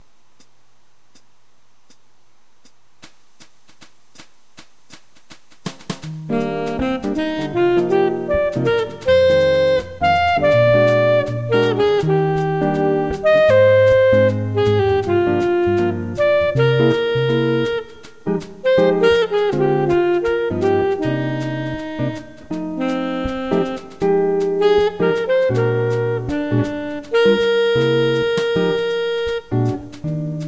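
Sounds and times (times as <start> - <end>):
saxophone: 6.2 - 30.4.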